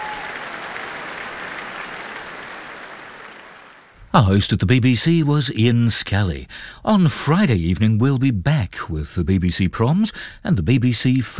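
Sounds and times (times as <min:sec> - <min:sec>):
large concert audience applause: 0:00.0 - 0:04.0
speech: 0:04.1 - 0:11.3.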